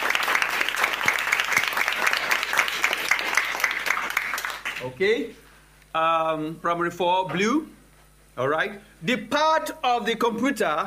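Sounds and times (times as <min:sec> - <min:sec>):
classroom applause: 0:00.0 - 0:05.0
speech: 0:04.8 - 0:05.4, 0:06.0 - 0:07.8, 0:08.4 - 0:10.8.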